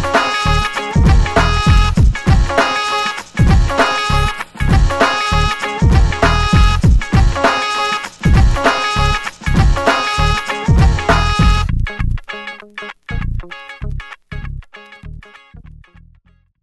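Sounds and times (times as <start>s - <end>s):
saxophone playing: 0.0s - 11.8s.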